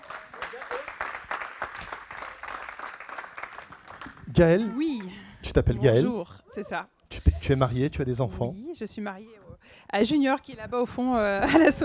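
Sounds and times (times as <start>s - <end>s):
audience applause: 0.0s - 5.2s
speech: 4.4s - 11.8s.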